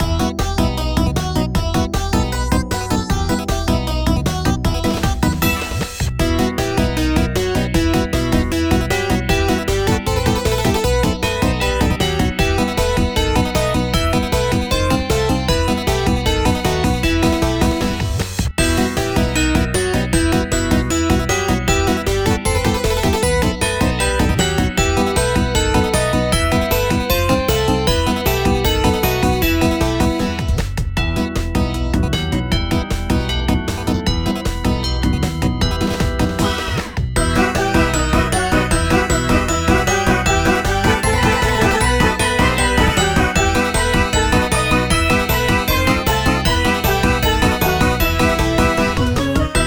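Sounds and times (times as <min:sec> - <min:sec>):
map background music: 0:00.0 - 0:49.6.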